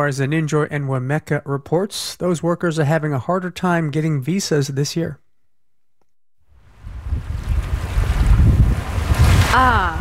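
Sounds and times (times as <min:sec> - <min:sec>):
speech: 0:00.0 - 0:05.2, 0:09.5 - 0:09.9
breeze buffeting the microphone: 0:06.6 - 0:09.9
ocean waves washing onto the shore: 0:06.6 - 0:09.9.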